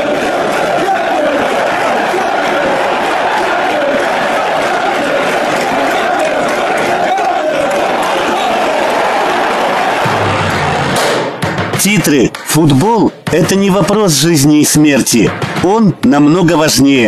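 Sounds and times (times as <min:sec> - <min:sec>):
football fans cheering in a stadium: 0:00.0 - 0:17.0
speech: 0:11.9 - 0:17.0.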